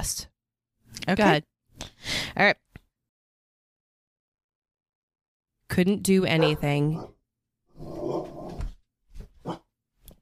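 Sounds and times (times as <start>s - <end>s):
speech: 0.0s - 0.3s, 1.1s - 2.6s, 5.7s - 7.2s
dog barking: 6.4s - 7.1s.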